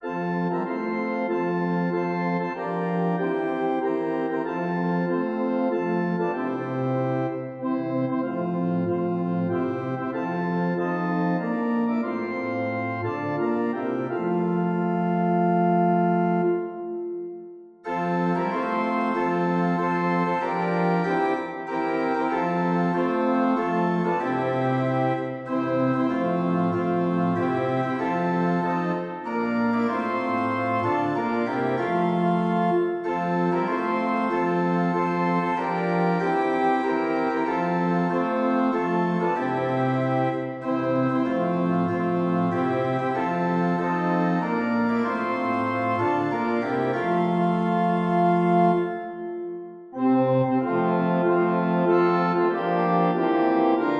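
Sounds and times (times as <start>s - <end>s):
organ: 0.0s - 53.9s.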